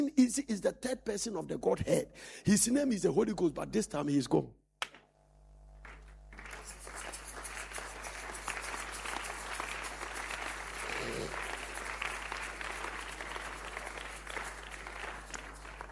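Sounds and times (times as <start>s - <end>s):
speech: 0.0s - 4.6s
audience clapping: 5.8s - 15.9s.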